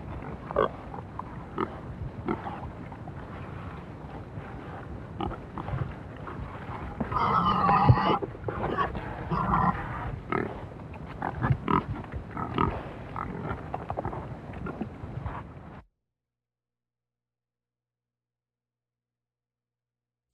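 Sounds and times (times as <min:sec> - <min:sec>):
pigs grunting and snuffling while feeding: 0:00.0 - 0:15.8.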